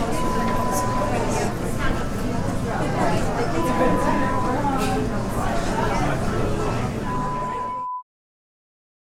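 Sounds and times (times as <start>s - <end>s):
restaurant ambience: 0.0s - 7.9s.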